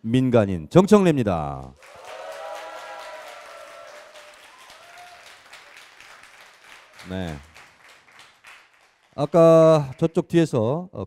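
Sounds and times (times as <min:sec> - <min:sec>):
speech: 0:00.0 - 0:01.9, 0:07.1 - 0:07.5, 0:09.2 - 0:11.0
audience applause: 0:01.8 - 0:10.2.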